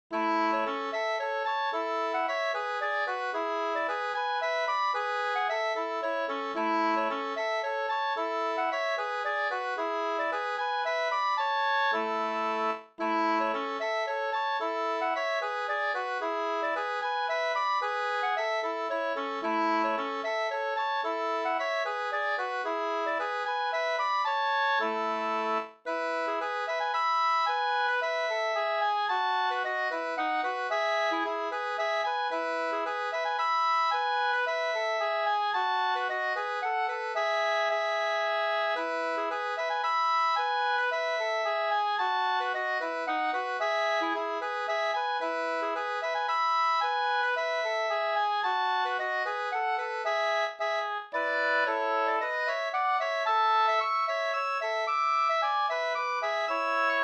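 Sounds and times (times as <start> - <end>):
slängpolska folk dance tune: 0.1 - 57.0.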